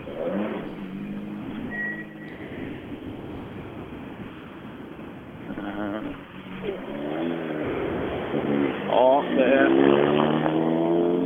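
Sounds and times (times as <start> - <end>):
rally car engines revving at the finish: 0.0 - 4.8, 5.4 - 11.2
person murmuring: 5.5 - 6.9.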